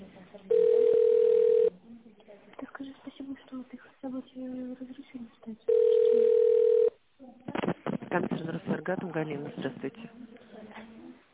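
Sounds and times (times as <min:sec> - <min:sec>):
telephone ringback tone while a call is transferred to a contact centre: 0:00.5 - 0:01.7, 0:05.7 - 0:07.0
speech: 0:08.9 - 0:10.2.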